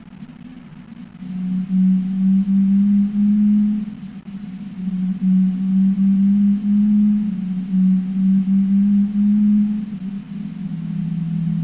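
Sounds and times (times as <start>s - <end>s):
sonar ping: 1.2s - 11.6s.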